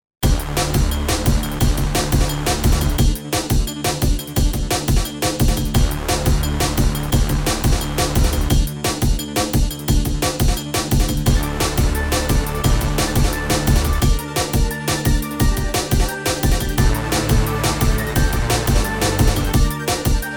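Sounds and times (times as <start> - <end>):
Juno X cyber synth bass: 0.2 - 20.3.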